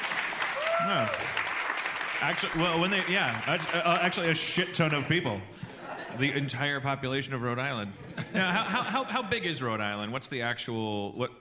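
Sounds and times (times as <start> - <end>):
audience clapping: 0.0 - 5.4
speech: 0.8 - 1.4, 2.2 - 11.4
laughter: 5.5 - 6.5, 7.9 - 9.4.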